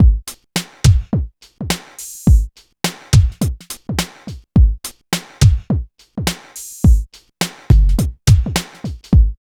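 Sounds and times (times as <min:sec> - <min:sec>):
phat and phunky loop: 0:00.0 - 0:09.4.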